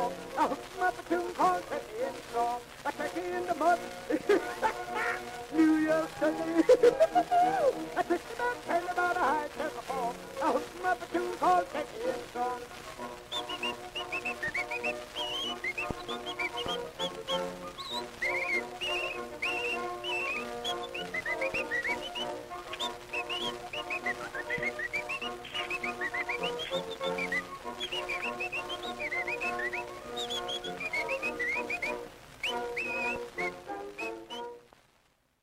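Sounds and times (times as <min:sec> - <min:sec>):
bouncing instrumental accompaniment on an old phonograph recording: 0:00.0 - 0:34.7
speech: 0:00.4 - 0:08.2
laughter: 0:04.1 - 0:08.0
whistling on a 1912 phonograph recording: 0:13.3 - 0:34.7.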